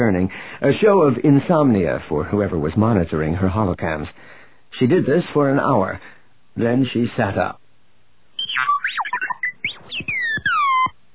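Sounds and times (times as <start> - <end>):
speech: 0.0 - 7.6
robot beeping and warbling: 8.4 - 11.0.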